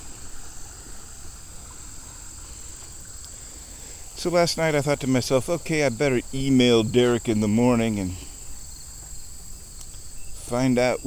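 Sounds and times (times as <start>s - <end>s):
water rushing through a dam release: 0.0s - 8.6s
speech: 4.2s - 8.3s, 10.5s - 11.0s.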